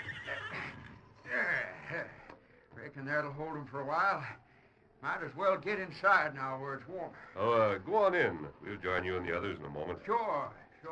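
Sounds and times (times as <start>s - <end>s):
horses neighing in a barn: 0.0s - 1.0s
speech: 2.8s - 4.4s, 5.0s - 10.9s.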